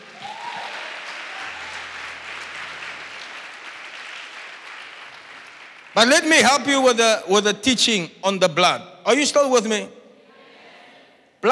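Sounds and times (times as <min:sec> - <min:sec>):
audience clapping: 0:00.0 - 0:06.8
speech: 0:06.0 - 0:10.0.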